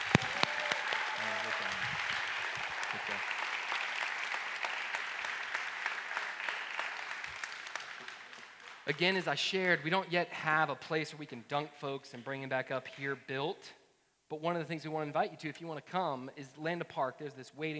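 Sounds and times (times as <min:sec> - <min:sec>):
audience applause: 0:00.0 - 0:09.3
speech: 0:02.9 - 0:03.4, 0:08.9 - 0:17.7.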